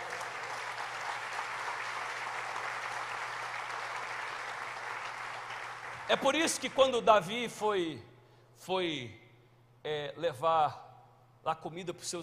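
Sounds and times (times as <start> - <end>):
audience applause: 0.0 - 6.9
speech: 6.1 - 9.2, 9.8 - 10.8, 11.4 - 12.2.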